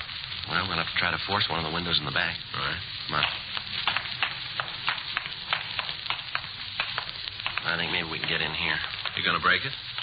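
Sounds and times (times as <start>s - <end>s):
water running inside a building: 0.0s - 10.0s
speech: 0.6s - 3.5s, 7.7s - 9.9s.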